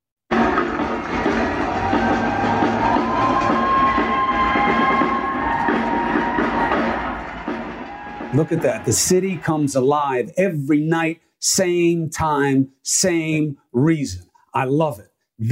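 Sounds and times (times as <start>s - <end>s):
city crowd cheering in appreciation in New York City: 0.3s - 10.3s
speech: 8.4s - 15.4s.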